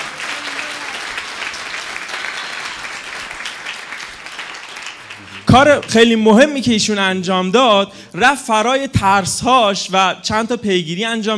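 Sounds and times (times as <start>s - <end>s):
audience applause in honour of a group member at a talk: 0.0s - 6.3s
speech: 5.5s - 11.3s.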